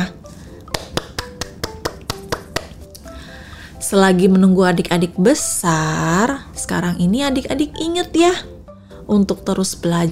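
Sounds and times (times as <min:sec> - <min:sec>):
hand clapping: 0:00.6 - 0:03.0
speech: 0:03.9 - 0:08.5, 0:09.1 - 0:10.1.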